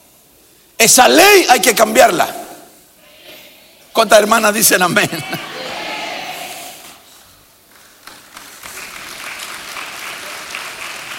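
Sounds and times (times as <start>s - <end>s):
speech: 0.8s - 2.4s, 4.0s - 5.6s
audience applauding: 7.7s - 11.1s.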